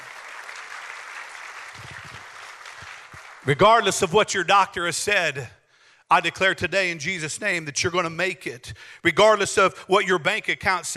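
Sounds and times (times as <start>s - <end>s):
church congregation applause: 0.0s - 4.5s
speech: 3.4s - 10.9s.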